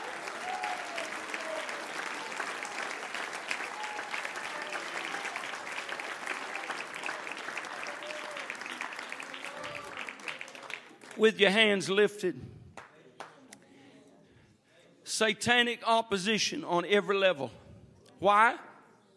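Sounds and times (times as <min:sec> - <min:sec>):
audience clapping hands: 0:00.0 - 0:11.6, 0:12.7 - 0:13.4
speech: 0:11.2 - 0:12.6, 0:15.2 - 0:17.6, 0:18.2 - 0:18.7.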